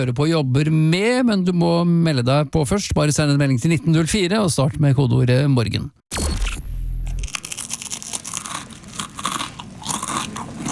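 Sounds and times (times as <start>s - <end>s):
speech: 0.0s - 6.5s
crispbread being chewed: 7.2s - 10.6s.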